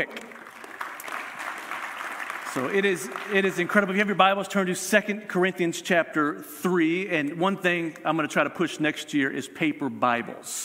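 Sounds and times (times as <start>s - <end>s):
speech: 0.0s - 0.2s, 2.6s - 10.6s
audience applause: 0.0s - 4.2s.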